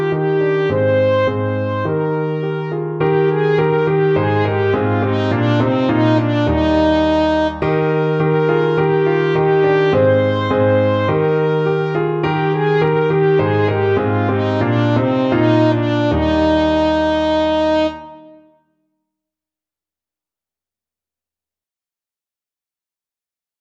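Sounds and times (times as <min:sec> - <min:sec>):
slow trumpet playing: 0:00.0 - 0:18.6.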